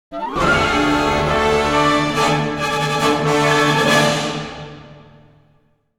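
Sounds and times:
music: 0.1s - 5.9s.

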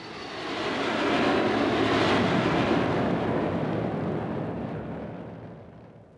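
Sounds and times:
jet aircraft: 0.0s - 5.2s.

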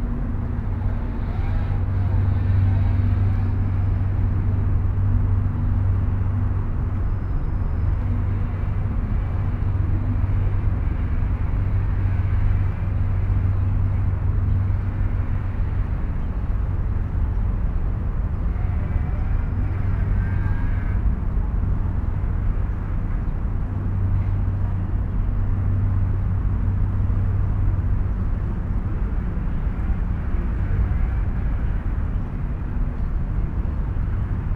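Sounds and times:
Paris river tour ambience: 0.0s - 34.5s.

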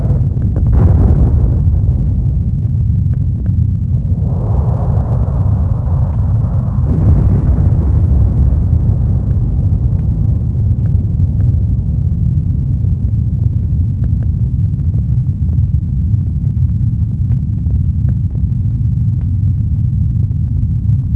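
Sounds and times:
explosions: 0.0s - 13.3s
rumbling flames: 0.0s - 21.1s.

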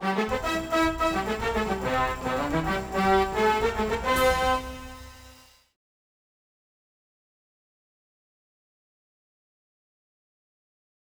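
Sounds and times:
race win music: 0.0s - 5.5s.

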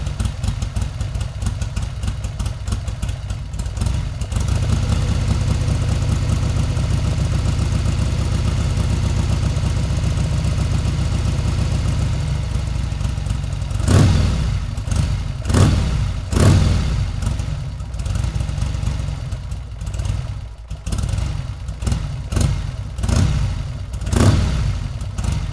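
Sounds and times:
motorbike: 0.0s - 25.5s.

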